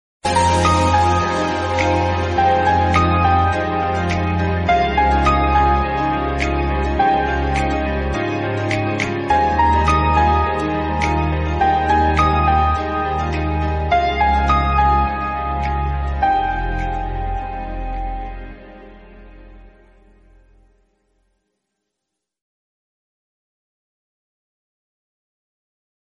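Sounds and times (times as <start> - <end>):
instrumental music: 0.2 - 21.0.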